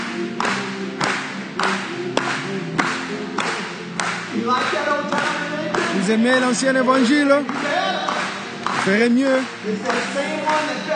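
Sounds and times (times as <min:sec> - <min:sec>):
church congregation clapping in a steady rhythm: 0:00.0 - 0:10.9
speech: 0:06.1 - 0:07.7, 0:08.8 - 0:10.9.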